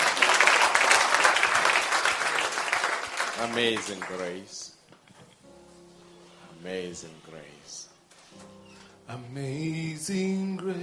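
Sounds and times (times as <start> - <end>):
crowd clapping: 0.0 - 4.6
speech: 3.4 - 4.7, 6.6 - 10.8.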